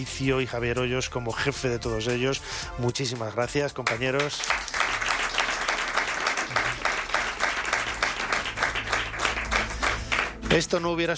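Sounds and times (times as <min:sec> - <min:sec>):
speech: 0:00.0 - 0:04.7, 0:10.5 - 0:11.1
applause: 0:03.8 - 0:10.9.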